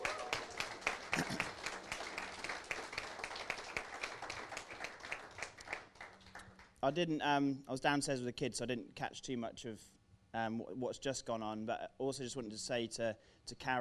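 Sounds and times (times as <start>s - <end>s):
audience applause: 0.0s - 6.7s
speech: 1.2s - 1.5s, 6.8s - 13.7s.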